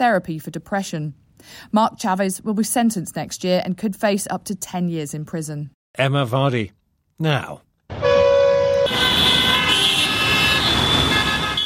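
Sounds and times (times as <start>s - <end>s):
speech: 0.0s - 7.6s
car horns honking in street traffic in Dhaka Bangladesh: 7.9s - 11.6s
constant rumble of street traffic in Dhaka Bangladesh: 7.9s - 11.6s.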